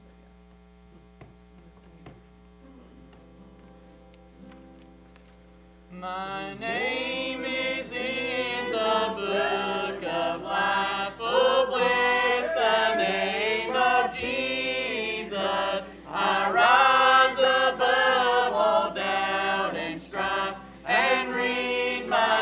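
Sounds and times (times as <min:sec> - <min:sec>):
family singing: 0:05.9 - 0:22.4.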